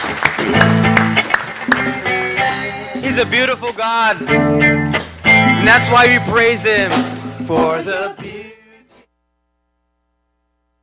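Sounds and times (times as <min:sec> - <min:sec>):
audience applauding: 0:00.0 - 0:02.9
speech: 0:03.2 - 0:04.8, 0:05.5 - 0:08.4.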